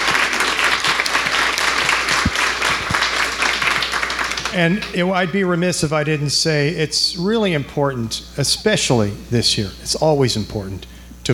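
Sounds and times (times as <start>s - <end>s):
audience applause: 0.0s - 4.9s
speech: 4.6s - 11.3s.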